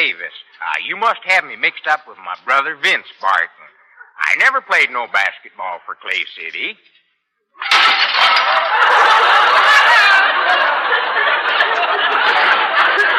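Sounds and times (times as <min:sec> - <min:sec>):
speech: 0:00.1 - 0:03.6, 0:04.2 - 0:06.9
breaking and rattling crockery: 0:07.6 - 0:10.2
stack of dishes dropped and crashing: 0:07.6 - 0:10.3
laughter: 0:08.0 - 0:13.1.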